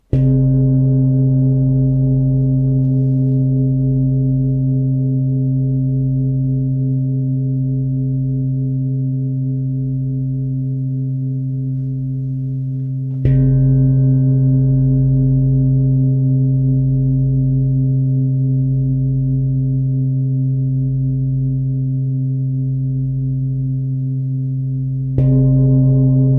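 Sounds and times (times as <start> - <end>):
giant Tibetan singing bowl: 0.1 - 26.3.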